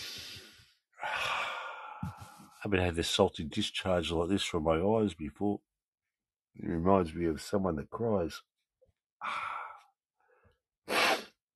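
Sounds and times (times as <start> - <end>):
person sniffing: 0.0 - 0.6, 10.9 - 11.4
speech: 2.6 - 5.7, 6.6 - 8.5, 9.2 - 9.4.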